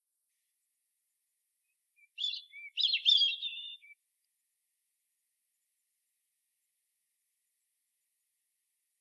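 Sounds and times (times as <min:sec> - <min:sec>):
European robin warbling song: 0:01.6 - 0:04.0.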